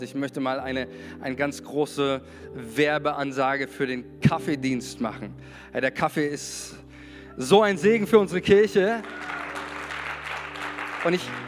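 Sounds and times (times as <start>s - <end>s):
speech: 0.0s - 9.4s, 11.0s - 11.4s
audience applause: 9.0s - 11.4s.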